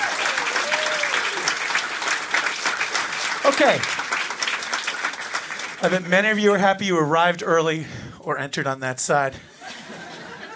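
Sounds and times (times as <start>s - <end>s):
audience applause: 0.0s - 6.6s
speech: 3.5s - 4.0s, 5.8s - 9.5s
laughter: 9.5s - 10.5s.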